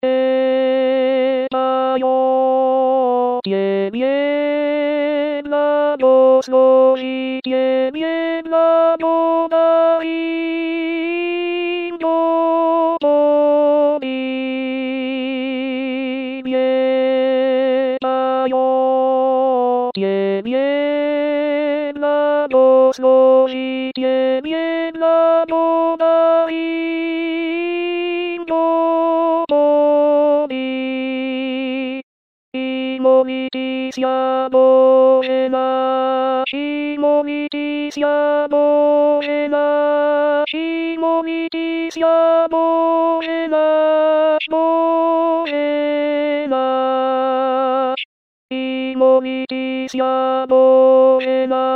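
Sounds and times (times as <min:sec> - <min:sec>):
alto voice singing: 0:00.0 - 0:51.7.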